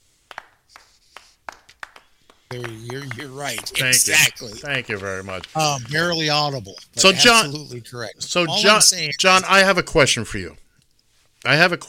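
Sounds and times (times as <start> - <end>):
hand clapping: 0.0 - 6.6
speech: 2.5 - 10.6, 11.4 - 11.8.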